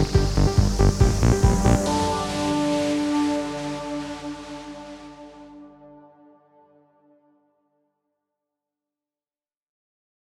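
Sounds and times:
low combat music: 0.0s - 6.5s.

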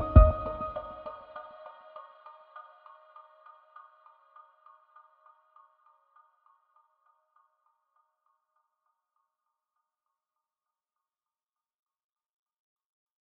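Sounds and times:
lo-fi remix anvil ambience: 0.0s - 1.0s.

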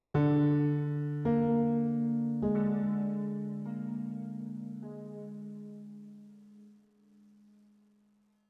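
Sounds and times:
piano one shot: 0.2s - 7.5s.

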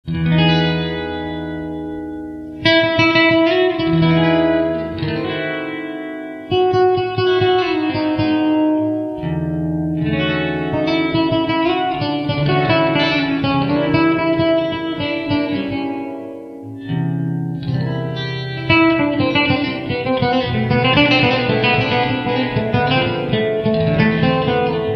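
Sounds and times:
sweet flamenco fusion music: 0.3s - 24.9s.

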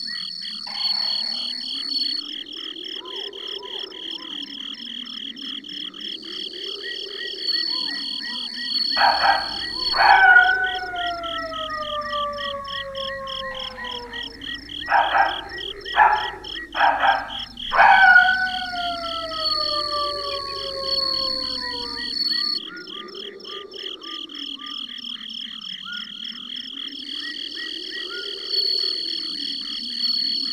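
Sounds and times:
ambience: 0.6s - 2.3s, 7.5s - 22.6s.

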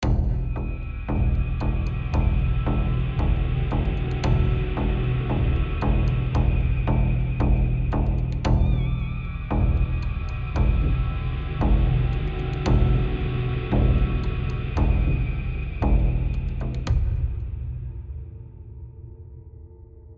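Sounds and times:
high tension music: 0.0s - 20.0s.

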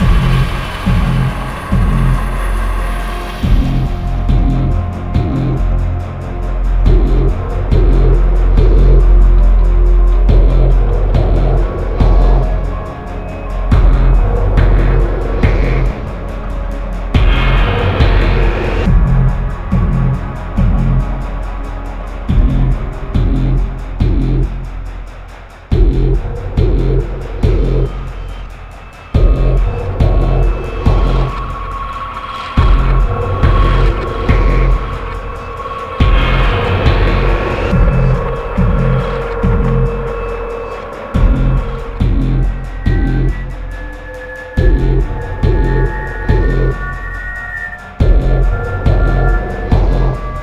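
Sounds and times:
suspense music: 0.0s - 50.4s.

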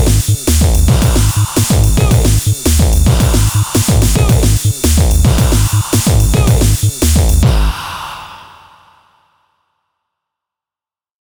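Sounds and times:
hardcore music: 0.0s - 7.8s.

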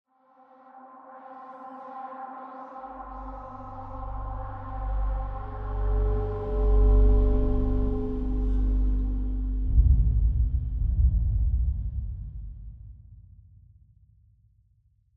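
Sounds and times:
dark scary exploration mood music: 2.8s - 12.5s.

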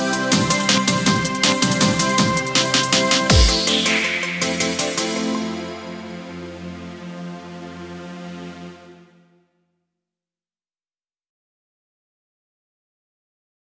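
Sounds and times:
karaoke singing: 0.0s - 6.4s.

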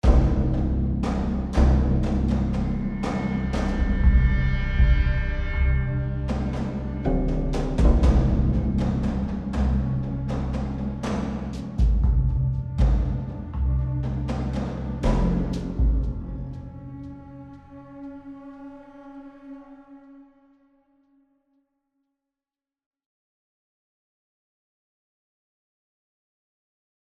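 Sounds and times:
tension music: 0.0s - 20.4s.

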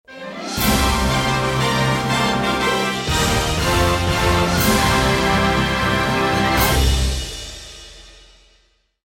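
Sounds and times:
trial success jingle: 0.2s - 7.6s.

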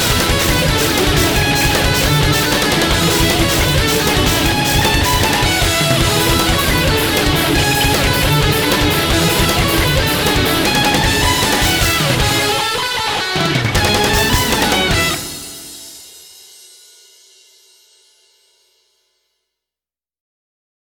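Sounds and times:
backing track without bass: 0.0s - 16.0s.

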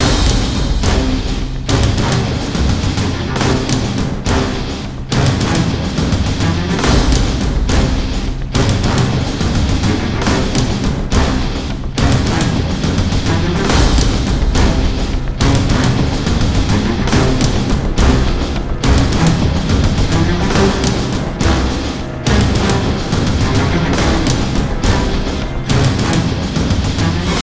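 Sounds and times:
full band breakdown loop: 0.0s - 27.4s.

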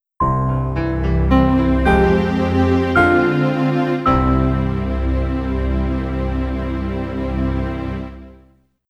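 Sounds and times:
music sting: 1.0s - 8.3s.

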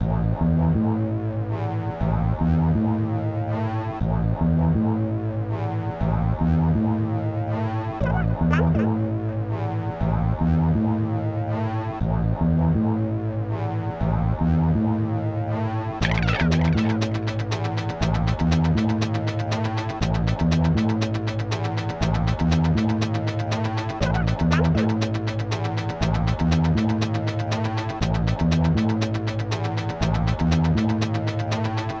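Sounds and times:
ambient suspense music: 0.0s - 31.9s.

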